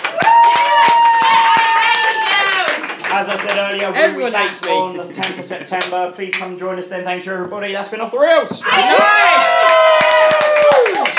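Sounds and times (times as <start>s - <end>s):
audience applause: 0.0s - 4.4s, 9.0s - 11.1s
speech: 3.2s - 9.8s.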